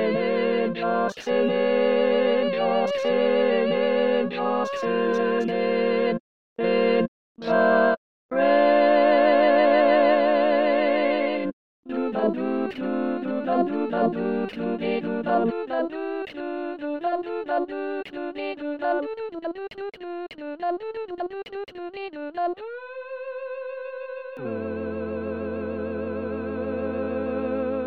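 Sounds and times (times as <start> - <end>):
SATB four-part choir singing: 0.0 - 17.8, 24.4 - 27.8.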